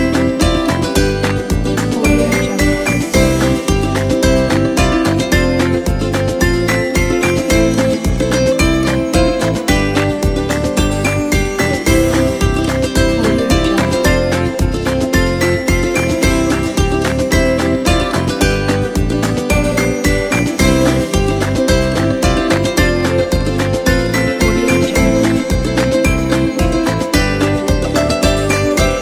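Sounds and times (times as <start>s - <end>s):
ukulele kit: 0.0s - 28.9s.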